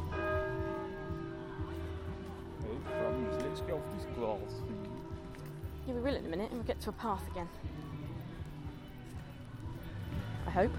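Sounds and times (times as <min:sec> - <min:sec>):
church clock bell striking: 0:00.0 - 0:01.7, 0:02.8 - 0:05.4
faint murmuring voices: 0:00.0 - 0:10.7
speech: 0:03.6 - 0:04.8, 0:05.8 - 0:07.9, 0:10.6 - 0:10.7.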